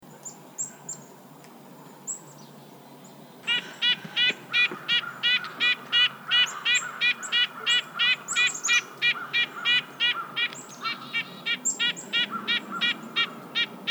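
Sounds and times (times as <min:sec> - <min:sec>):
Red-breasted nuthatch Sitta canadensis nasal horn-like calls: 0:03.4 - 0:13.8.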